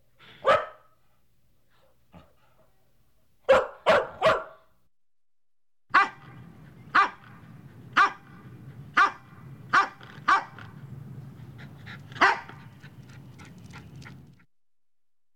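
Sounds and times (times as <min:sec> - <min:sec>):
medium-sized dog barking: 0:00.3 - 0:01.0, 0:03.4 - 0:04.7, 0:05.9 - 0:07.4, 0:08.0 - 0:08.4, 0:09.0 - 0:10.7, 0:12.2 - 0:12.7.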